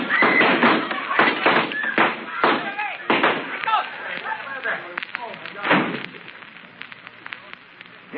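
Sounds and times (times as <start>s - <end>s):
gunshots in a saloon shootout: 0.0s - 3.6s, 5.6s - 6.2s
excited voices shouting: 0.0s - 3.9s.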